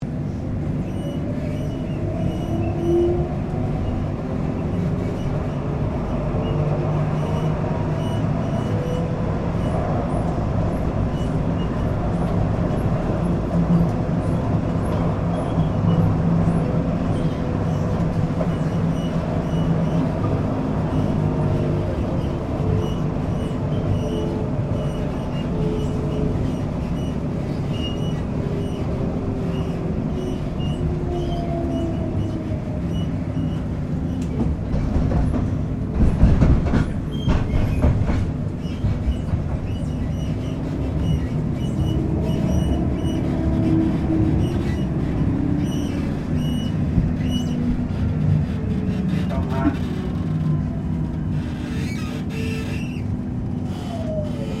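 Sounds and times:
Melbourne C Class tram interior, empty: 0:00.0 - 0:54.5.

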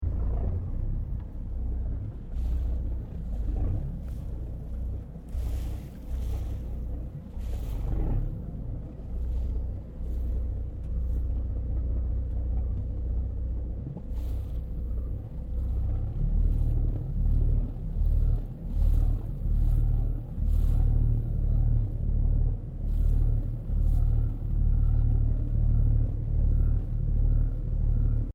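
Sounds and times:
tourist ferry boat engine idling: 0:00.0 - 0:28.3
waves: 0:00.0 - 0:28.3.

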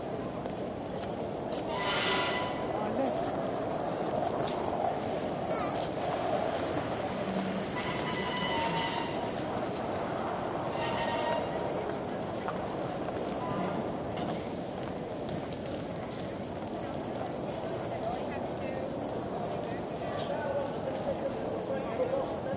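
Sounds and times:
trolleys in a main line railway station: 0:00.0 - 0:22.5
footsteps in a main line railway station: 0:00.4 - 0:22.5.

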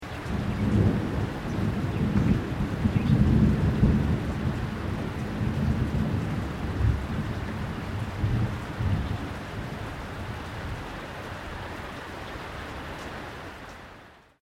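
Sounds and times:
rain: 0:00.0 - 0:14.4
distant low thunder: 0:00.2 - 0:10.5.

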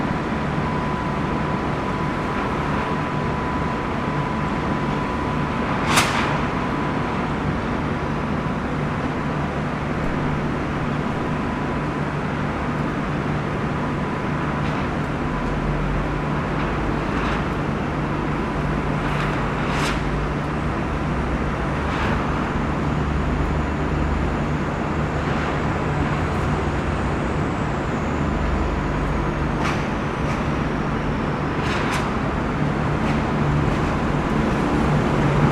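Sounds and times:
train station ambience: 0:00.0 - 0:35.5
train moving in a train station: 0:14.8 - 0:35.5.

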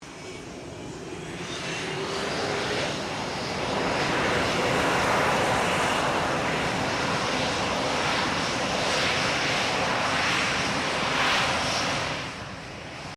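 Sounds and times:
FA-18 Hornet taxiing: 0:00.0 - 0:13.1.

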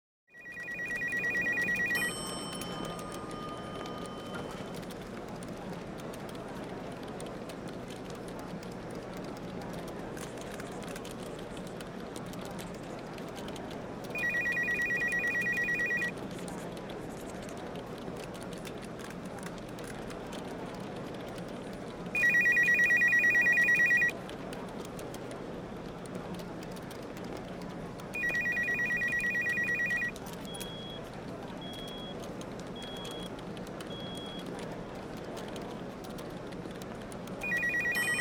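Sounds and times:
elevator bell: 0:00.4 - 0:04.9, 0:14.2 - 0:16.1, 0:22.2 - 0:24.1, 0:28.2 - 0:30.1, 0:37.4 - 0:38.2
office phones ringing: 0:00.4 - 0:05.0, 0:14.2 - 0:16.1, 0:22.2 - 0:24.1, 0:28.2 - 0:31.0, 0:37.4 - 0:38.2
heavy office chatter: 0:00.4 - 0:38.2.

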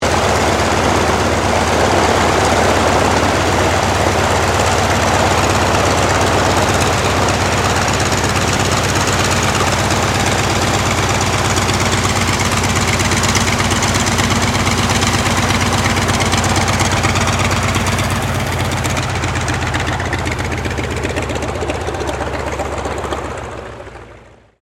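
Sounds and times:
CAC Wirraway aircraft taxiing: 0:00.0 - 0:24.6.

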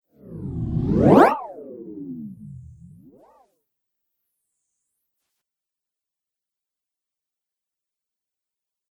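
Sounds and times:
crazy motion elastic whoosh: 0:00.2 - 0:03.4.

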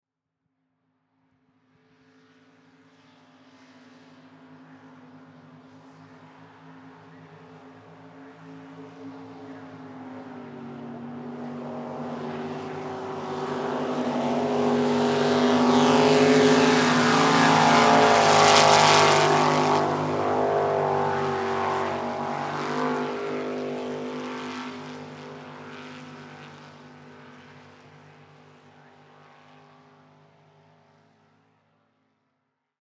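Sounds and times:
swamp buggy passing fast: 0:09.4 - 0:26.6.

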